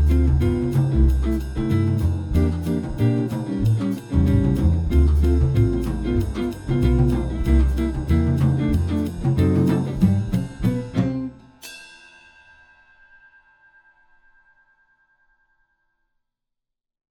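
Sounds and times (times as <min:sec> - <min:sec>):
latin etude rhythm section: 0:00.0 - 0:11.8.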